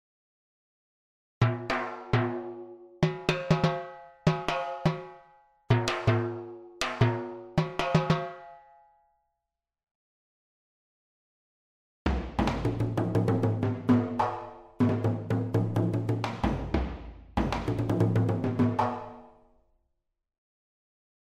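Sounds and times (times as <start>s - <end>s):
ethnic drums: 1.4s - 8.6s, 12.1s - 19.3s.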